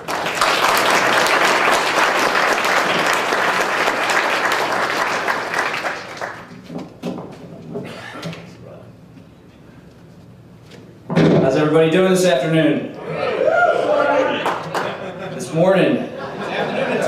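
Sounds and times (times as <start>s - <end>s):
audience applause welcoming a speaker at a political movement gathering in Texas: 0.0s - 6.5s, 13.8s - 15.1s
speech: 11.7s - 12.9s, 15.6s - 16.1s
laughter: 13.7s - 17.0s.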